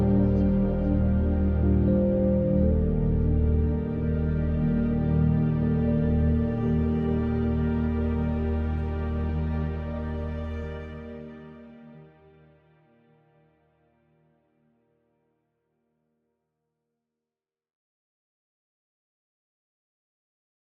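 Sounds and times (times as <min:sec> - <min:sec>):
ambient electronic music: 0:00.0 - 0:13.0.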